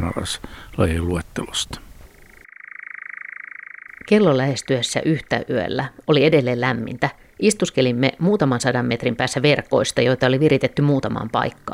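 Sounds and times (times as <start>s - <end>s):
speech: 0.0s - 1.9s, 4.1s - 11.7s
European nightjar churring at night: 2.1s - 11.7s.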